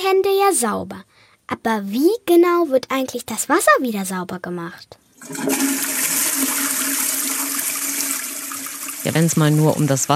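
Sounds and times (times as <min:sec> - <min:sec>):
speech: 0:00.1 - 0:06.6, 0:09.0 - 0:10.1
toilet flushing: 0:05.2 - 0:10.1.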